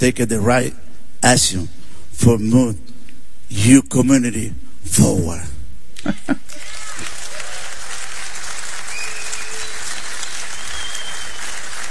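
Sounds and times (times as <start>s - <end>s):
speech: 0.0s - 2.9s, 3.5s - 6.7s
laughter: 6.0s - 7.6s
crowd applauding: 6.4s - 11.8s.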